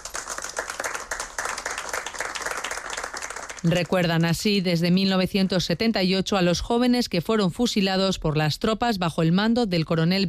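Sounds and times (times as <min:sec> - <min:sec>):
applause after a floral offering: 0:00.0 - 0:04.6
speech: 0:03.6 - 0:10.2.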